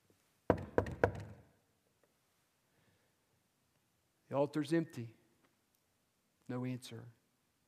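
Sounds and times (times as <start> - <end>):
firm knocking on a wooden door: 0.5 - 1.4
speech: 4.3 - 5.2, 6.5 - 7.2.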